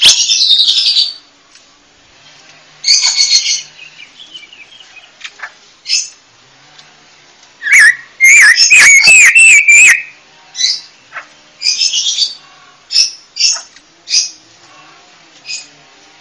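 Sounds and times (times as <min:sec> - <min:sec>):
panca warna bird chirping: 0:00.0 - 0:01.3, 0:02.8 - 0:06.2, 0:07.6 - 0:14.4.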